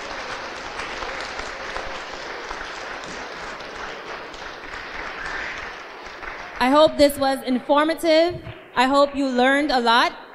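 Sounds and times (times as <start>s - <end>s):
audience applause: 0.0s - 7.1s
speech: 6.6s - 10.2s.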